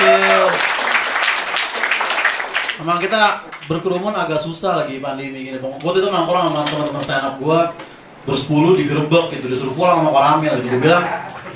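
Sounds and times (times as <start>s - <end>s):
audience applause: 0.0s - 3.2s
speech: 2.8s - 11.4s.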